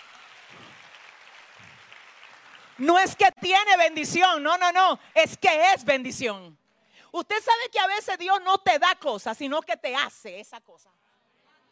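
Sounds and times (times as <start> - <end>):
church congregation applause: 0.0 - 3.4
speech: 2.8 - 11.0.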